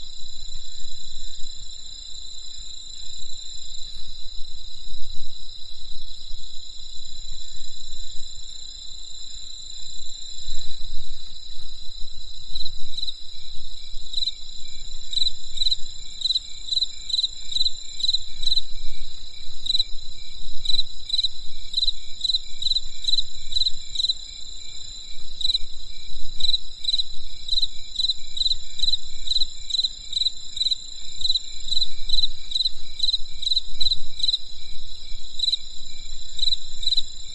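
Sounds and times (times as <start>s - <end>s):
cricket chirps: 0.0s - 37.3s
insect shrill ringing drone: 0.0s - 37.3s.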